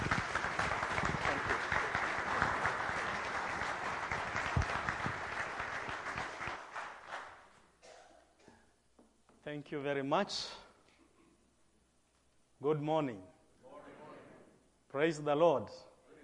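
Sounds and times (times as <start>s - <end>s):
Free Methodist congregation clapping to welcome a bishop from Kenya: 0.0s - 7.6s
speech: 9.6s - 10.6s, 12.6s - 13.3s, 14.9s - 15.9s.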